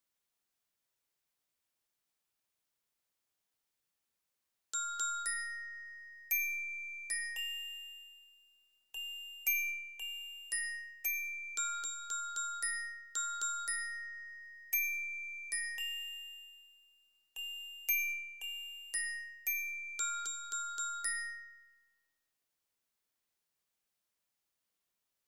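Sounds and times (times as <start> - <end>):
lyra glockenspiel of a Spielmannszug marching band: 4.8 - 22.2.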